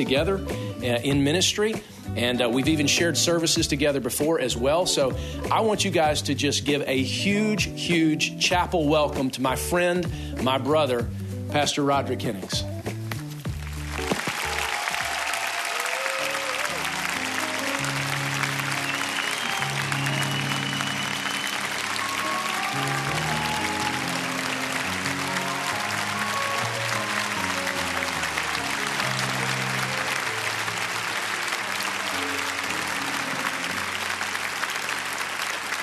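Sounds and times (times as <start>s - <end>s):
speech: 0.0s - 12.7s
audience applause: 13.5s - 35.8s.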